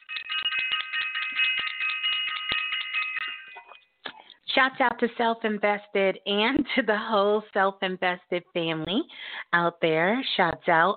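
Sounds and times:
small bell shaken: 0.0s - 4.0s
speech: 4.6s - 10.9s.

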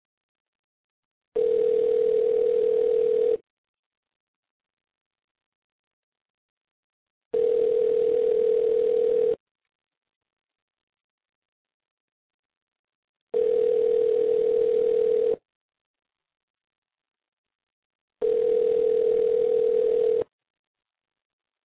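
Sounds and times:
outgoing call ringback tone: 1.4s - 3.4s, 7.4s - 9.4s, 13.4s - 15.4s, 18.2s - 20.3s.

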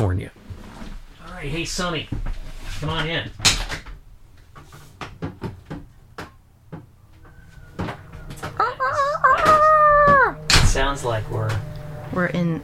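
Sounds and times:
speech: 0.0s - 0.4s, 1.4s - 3.5s, 10.9s - 12.6s
doors opening: 6.8s - 12.3s.

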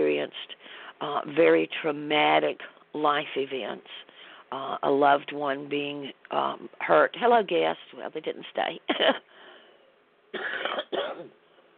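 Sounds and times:
speech: 0.3s - 9.3s, 10.3s - 11.4s
person coughing: 10.4s - 11.3s.

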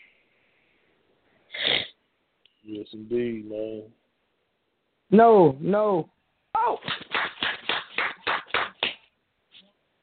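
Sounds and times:
speech: 2.7s - 4.0s, 5.1s - 6.2s
hand claps: 6.8s - 9.1s.

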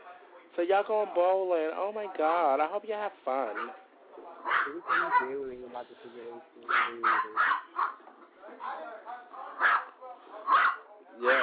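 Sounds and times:
speech: 0.6s - 8.9s, 11.2s - 11.4s
dogs barking excitedly: 3.5s - 3.8s, 4.4s - 5.4s, 6.6s - 11.4s.

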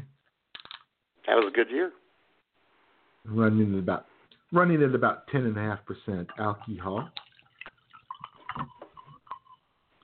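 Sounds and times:
speech: 1.3s - 2.0s, 3.2s - 7.2s
White Zinfandel wine pouring into a glass: 6.2s - 9.7s.

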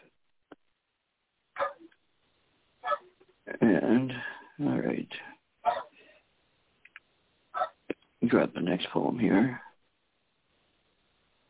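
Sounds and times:
dog barking: 1.6s - 1.9s, 2.8s - 3.1s, 5.6s - 6.0s, 7.5s - 7.8s
speech: 3.7s - 5.4s, 8.3s - 9.7s.

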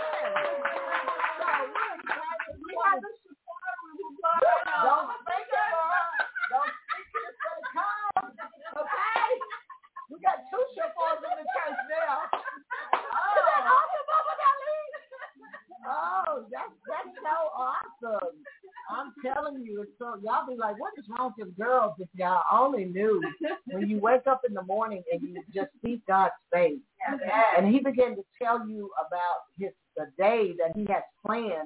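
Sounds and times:
audience hand clapping: 0.0s - 2.9s, 12.3s - 13.3s
laughter: 0.0s - 19.5s, 23.1s - 24.0s, 25.1s - 25.8s
speech: 0.2s - 0.8s, 20.2s - 31.6s.

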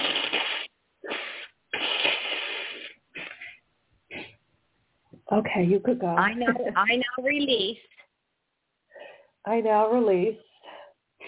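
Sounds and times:
nose blowing: 0.0s - 4.4s
speech: 5.3s - 8.0s, 9.5s - 10.5s.

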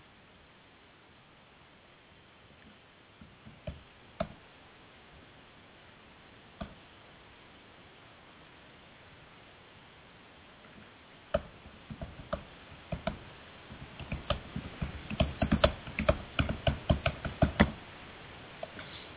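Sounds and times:
typing on a computer keyboard: 11.4s - 17.8s.

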